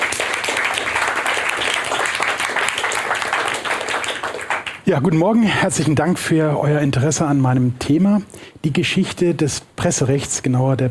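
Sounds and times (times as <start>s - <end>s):
audience applause: 0.0s - 4.8s
speech: 4.9s - 10.8s.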